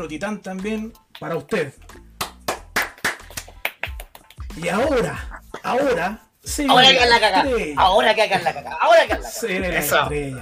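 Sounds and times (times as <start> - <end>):
speech: 0.0 - 2.0, 4.6 - 10.4
rhythmic sharp hand claps: 0.6 - 5.7
laughter: 4.7 - 10.0.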